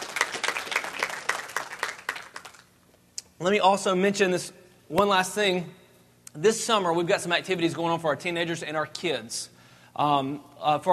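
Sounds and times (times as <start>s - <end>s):
audience applause: 0.0s - 2.7s
speech: 3.4s - 10.9s.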